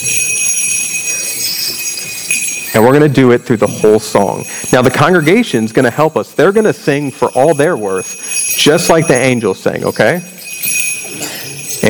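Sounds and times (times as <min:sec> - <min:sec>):
handbells ringing: 0:00.0 - 0:11.8
speech: 0:02.8 - 0:10.4.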